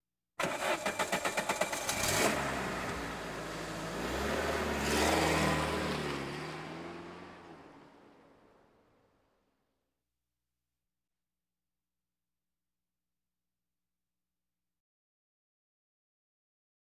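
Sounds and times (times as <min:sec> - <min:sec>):
various automobiles: 0:00.4 - 0:09.2.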